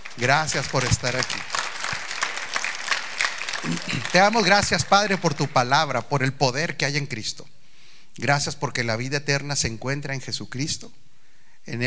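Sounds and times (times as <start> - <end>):
audience applause: 0.0 - 5.9
speech: 0.2 - 1.6, 3.6 - 7.6, 8.2 - 11.0, 11.6 - 11.8.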